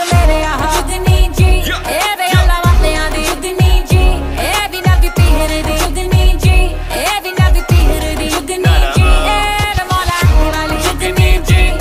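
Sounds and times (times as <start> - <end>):
Punjabi beats: 0.1 - 11.8.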